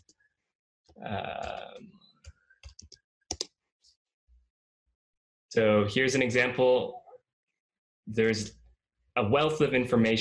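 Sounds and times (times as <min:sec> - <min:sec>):
computer keyboard clicks typing an address: 0:01.3 - 0:03.5
speech: 0:05.6 - 0:07.0, 0:08.1 - 0:08.6, 0:09.2 - 0:10.1.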